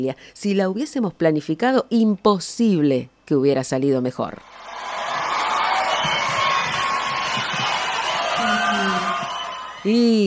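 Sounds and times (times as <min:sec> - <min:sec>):
speech: 0:00.0 - 0:04.7, 0:09.8 - 0:10.2
large crowd applauding and cheering: 0:04.4 - 0:10.2.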